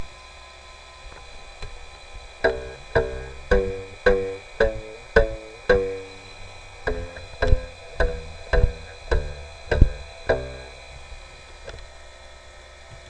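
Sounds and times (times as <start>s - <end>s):
guitar: 2.4s - 11.2s.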